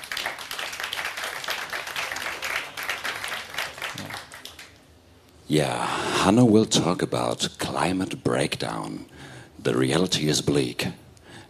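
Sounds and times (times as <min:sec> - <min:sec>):
audience applause: 0:00.0 - 0:04.8
speech: 0:05.5 - 0:11.0.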